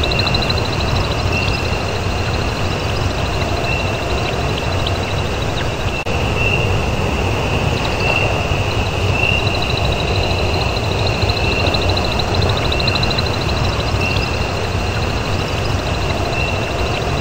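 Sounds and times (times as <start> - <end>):
wetland ambience: 0.0 - 17.2.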